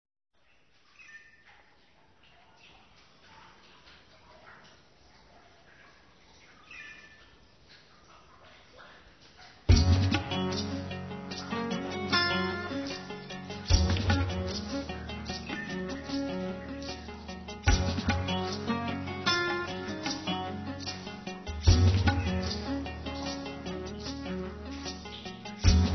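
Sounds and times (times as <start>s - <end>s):
fusion raga music: 9.7s - 25.9s.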